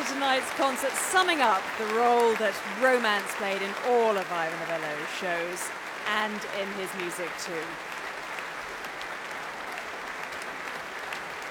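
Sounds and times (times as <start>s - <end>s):
concert audience applause at the Royal Albert Hall: 0.0s - 11.5s
speech: 0.2s - 7.9s.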